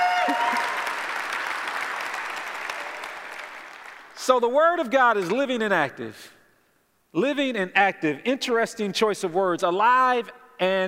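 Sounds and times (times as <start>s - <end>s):
audience applause: 0.0s - 4.2s
speech: 4.2s - 6.4s, 7.1s - 10.8s.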